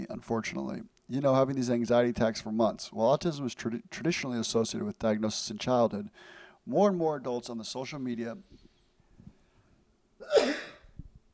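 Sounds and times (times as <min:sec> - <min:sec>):
speech: 0:00.0 - 0:08.6
sharp explosive cough: 0:10.2 - 0:11.0.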